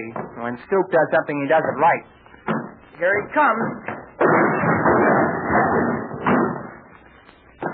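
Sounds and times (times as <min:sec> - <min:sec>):
speech: 0:00.0 - 0:02.2, 0:03.0 - 0:04.4
door smashed open with shoulder: 0:03.5 - 0:06.9.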